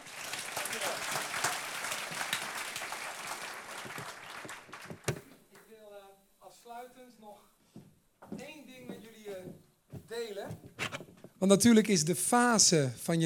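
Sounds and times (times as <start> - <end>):
audience applause: 0.0 - 5.2
speech: 11.4 - 13.2.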